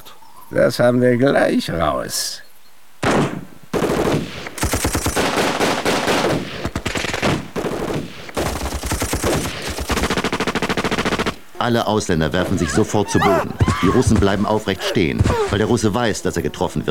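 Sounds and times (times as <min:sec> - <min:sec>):
speech: 0:00.5 - 0:02.4, 0:11.6 - 0:16.8
machine gun fire: 0:03.0 - 0:11.4, 0:15.2 - 0:15.8
laughter: 0:11.6 - 0:16.8.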